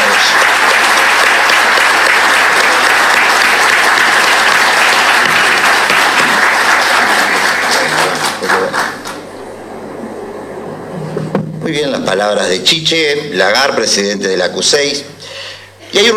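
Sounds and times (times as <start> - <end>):
large audience applause: 0.0 - 10.0
speech: 12.1 - 15.2, 15.9 - 16.1.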